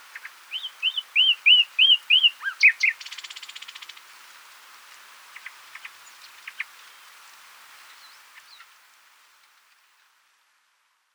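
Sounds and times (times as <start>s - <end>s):
common nightingale song: 0.0s - 4.0s.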